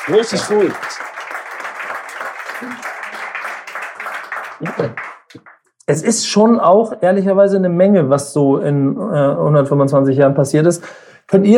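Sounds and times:
speech: 0.0 - 1.1, 2.6 - 2.9, 4.6 - 11.5
audience applause: 0.0 - 5.6.

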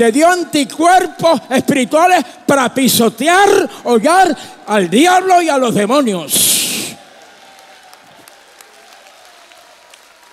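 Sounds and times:
speech: 0.0 - 6.6
audience applause: 6.4 - 10.3.

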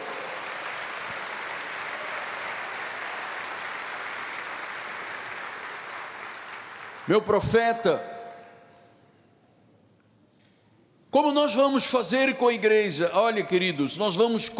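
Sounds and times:
audience applause: 0.0 - 7.1
speech: 7.1 - 8.1, 11.5 - 14.5.

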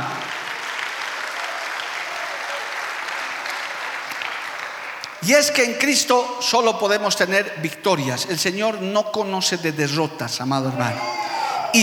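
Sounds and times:
audience applauding: 0.0 - 5.3
speech: 5.2 - 11.8.

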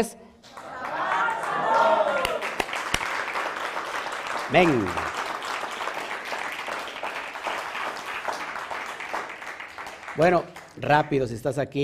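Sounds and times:
speech: 0.0 - 0.2, 4.5 - 5.2, 10.2 - 11.8
group clapping: 0.4 - 11.4
voices whooping: 0.5 - 2.6.

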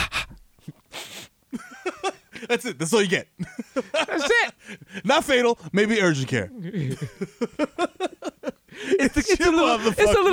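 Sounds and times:
person imitating sniffing with breathy inhales: 0.0 - 1.4
laughter: 1.5 - 2.5, 3.4 - 5.0, 6.7 - 10.3
speech: 2.5 - 7.9, 9.0 - 10.3.

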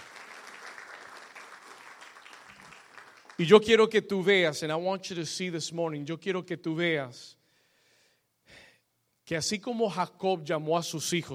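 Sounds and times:
audience applause: 0.0 - 3.4
speech: 3.4 - 7.4, 9.3 - 11.3.

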